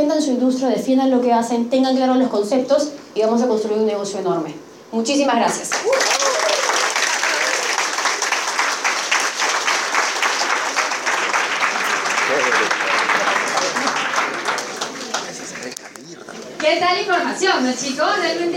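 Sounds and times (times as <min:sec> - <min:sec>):
speech: 0:00.2 - 0:06.3, 0:16.8 - 0:18.5
audience applause: 0:05.7 - 0:16.0.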